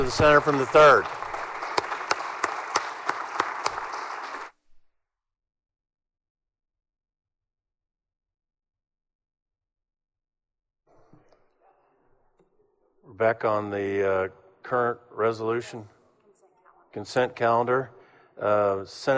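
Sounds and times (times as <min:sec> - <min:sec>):
speech: 0:00.0 - 0:01.2, 0:13.2 - 0:16.0, 0:17.0 - 0:19.1
audience applause: 0:00.0 - 0:04.6.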